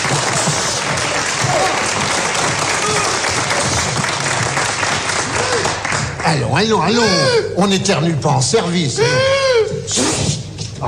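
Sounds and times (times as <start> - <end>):
audience applause: 0.0 - 6.5
speech: 6.3 - 10.1.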